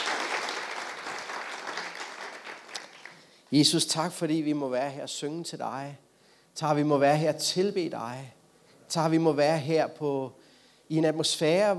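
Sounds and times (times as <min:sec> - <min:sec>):
warm round of applause: 0:00.0 - 0:03.4
speech: 0:03.5 - 0:06.0, 0:06.6 - 0:11.7.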